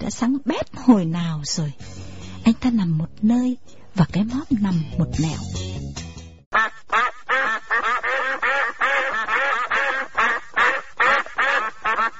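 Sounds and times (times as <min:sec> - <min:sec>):
speech: 0:00.1 - 0:05.7
flock of ducks quacking while being herded to feeding spot: 0:06.5 - 0:12.1.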